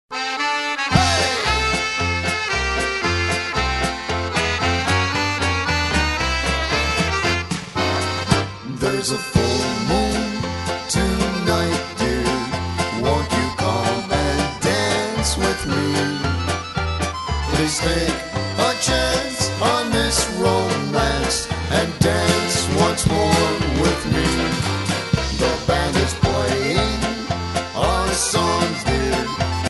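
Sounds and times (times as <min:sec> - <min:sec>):
music medley: 0:00.1 - 0:29.6.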